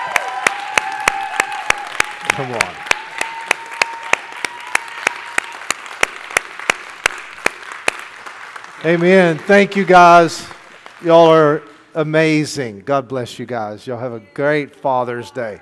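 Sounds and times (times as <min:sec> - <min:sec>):
audience clapping: 0:00.0 - 0:12.1
speech: 0:02.4 - 0:02.9, 0:08.8 - 0:15.6.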